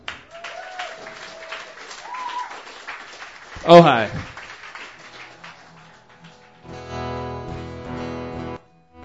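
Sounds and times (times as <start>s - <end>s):
cheering: 0.0s - 5.7s
open mic comedy audience applauding a first-time comic: 0.0s - 8.6s
speech: 3.6s - 4.3s.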